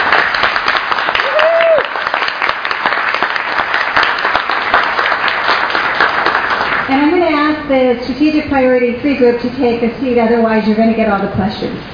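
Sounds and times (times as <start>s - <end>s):
audience applause: 0.0s - 6.9s
speech: 7.7s - 11.9s.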